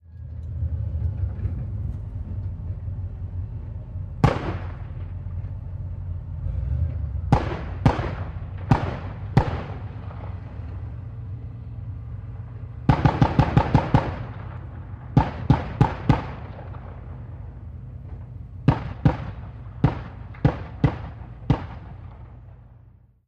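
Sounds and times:
APC armored vehicle driving outside: 0.0s - 23.2s
50 caliber machine gun firing: 4.2s - 5.1s, 7.3s - 10.4s, 12.9s - 17.2s, 18.6s - 22.6s.

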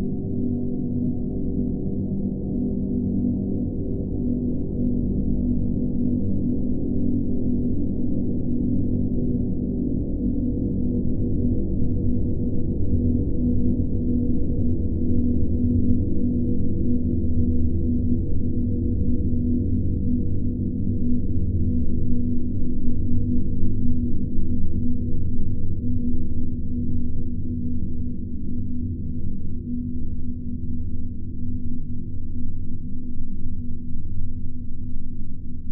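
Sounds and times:
deep space drone bed: 0.0s - 35.7s.

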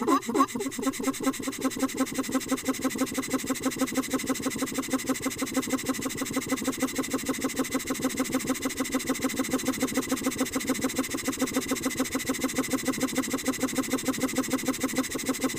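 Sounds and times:
small motor pump running: 0.0s - 15.5s.

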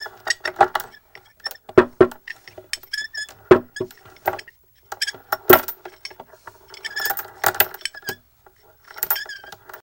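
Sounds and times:
chains: 4.2s - 5.9s, 6.7s - 8.2s, 8.8s - 9.6s.

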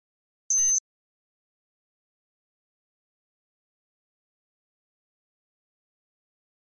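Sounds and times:
electronic flash beep: 0.5s - 0.8s.

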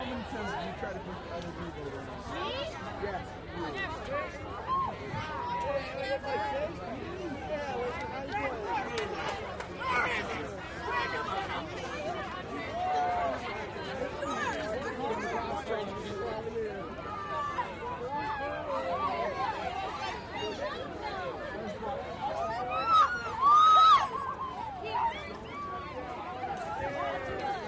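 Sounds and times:
active young crowd walla outside a college: 0.0s - 27.6s.

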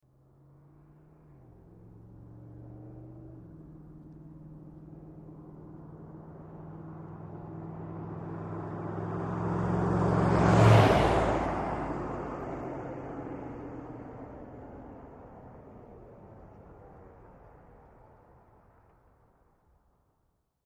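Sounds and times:
Humvee passing by fast and revving: 0.4s - 14.4s.

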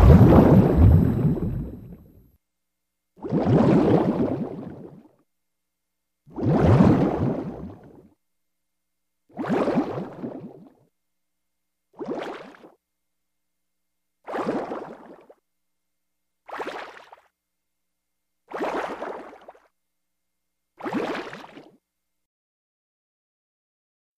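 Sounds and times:
bubbles released: 0.0s - 2.1s, 3.2s - 5.1s, 6.4s - 8.0s, 9.4s - 10.7s, 12.0s - 12.7s, 14.3s - 15.4s, 18.5s - 19.7s, 20.8s - 21.8s.

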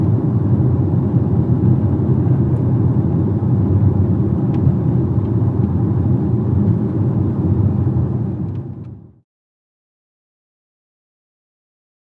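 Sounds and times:
sedan engine accelerating and stopping: 0.0s - 9.1s.

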